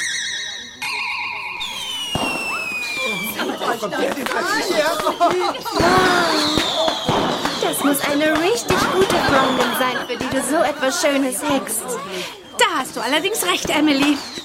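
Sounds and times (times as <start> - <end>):
fireworks exploding: 0.8 - 12.0, 12.6 - 14.4
laughter: 2.9 - 13.6
speech: 3.8 - 6.6, 7.8 - 14.4.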